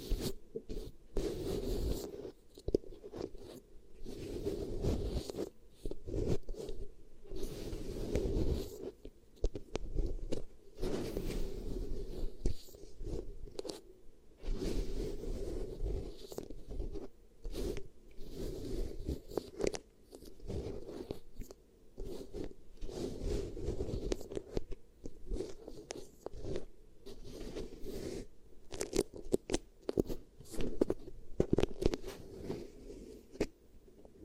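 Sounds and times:
beeswax sticky crinkly rubbing and squishing: 0:00.0 - 0:33.6.

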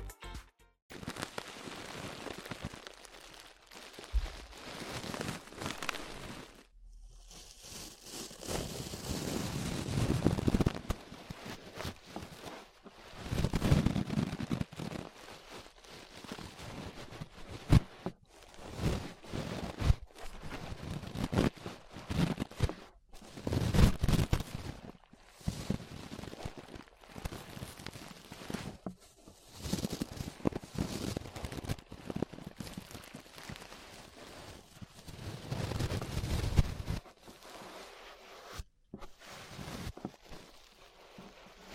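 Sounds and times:
brush rustling on an ear microphone: 0:01.1 - 0:41.7.

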